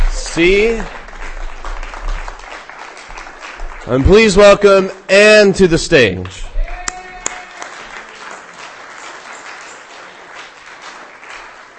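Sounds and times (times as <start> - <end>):
audience applause at a reading: 0.0 - 4.7, 6.4 - 11.7
speech: 0.4 - 1.0, 3.9 - 6.5.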